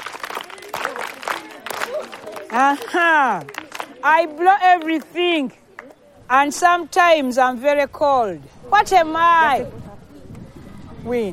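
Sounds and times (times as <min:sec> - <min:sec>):
children clapping: 0:00.0 - 0:05.2
speech: 0:02.5 - 0:05.6, 0:06.3 - 0:09.8, 0:11.0 - 0:11.3.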